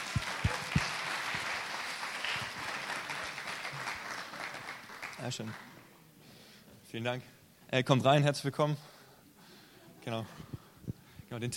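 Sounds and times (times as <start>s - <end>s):
audience applause: 0.0s - 5.9s
speech: 5.2s - 5.7s, 6.9s - 8.9s, 10.0s - 10.5s, 11.3s - 11.5s.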